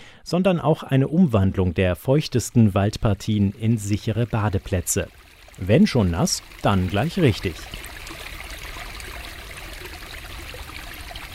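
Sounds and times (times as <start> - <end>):
speech: 0.3 - 7.9
water of the Heiligersbrunnen spring in Hanover trickling: 2.3 - 11.3.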